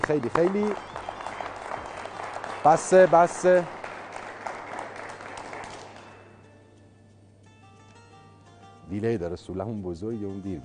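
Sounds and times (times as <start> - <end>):
crowd clapping in honor of a team after a decisive win: 0.0 - 6.3
speech: 0.1 - 1.0, 2.6 - 3.8, 9.0 - 10.6.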